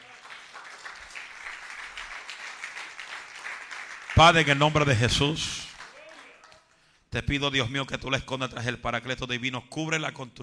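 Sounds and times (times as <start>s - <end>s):
applause: 0.0s - 6.9s
speech: 4.2s - 5.7s, 7.1s - 10.4s.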